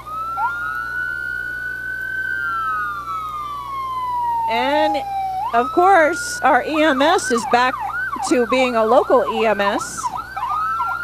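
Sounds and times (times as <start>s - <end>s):
Castro County Fire Department tanker truck siren: 0.0s - 11.0s
low steady engine hum: 0.0s - 11.0s
speech: 4.5s - 10.2s.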